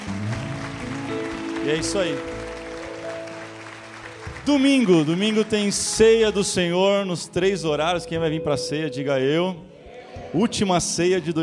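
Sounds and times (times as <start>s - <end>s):
audience applause: 0.0s - 6.7s
speech: 1.6s - 2.3s, 4.5s - 9.7s, 10.3s - 11.4s.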